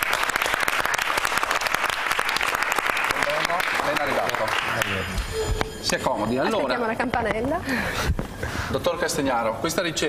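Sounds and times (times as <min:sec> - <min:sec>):
audience applause welcoming a guest: 0:00.0 - 0:06.1
speech: 0:05.9 - 0:10.0.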